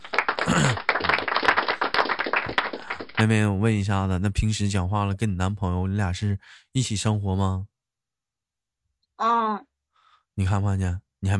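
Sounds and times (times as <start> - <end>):
light applause: 0.0 - 3.8
speech: 3.2 - 7.7, 9.2 - 9.7, 10.4 - 11.3.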